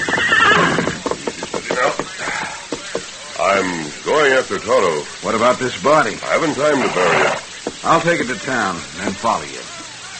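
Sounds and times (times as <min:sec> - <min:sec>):
horse neighing: 0:00.0 - 0:02.6, 0:06.6 - 0:07.6
speech: 0:03.5 - 0:09.7.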